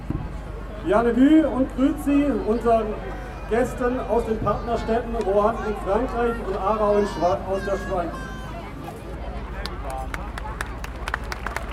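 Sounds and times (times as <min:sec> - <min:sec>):
speech: 0:00.8 - 0:08.3
audience applause: 0:09.6 - 0:11.7.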